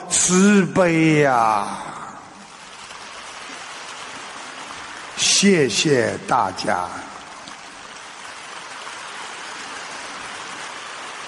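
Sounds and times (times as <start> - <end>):
crowd applause: 0.0 - 11.2
speech: 0.1 - 1.9, 5.4 - 7.1.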